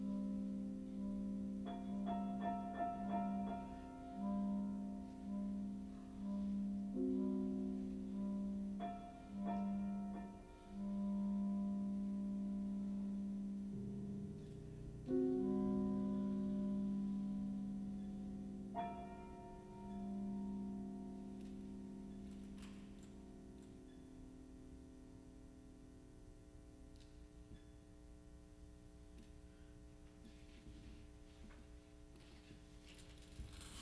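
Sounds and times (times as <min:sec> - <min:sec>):
clarinet and piano pieces: 0:00.0 - 0:25.5.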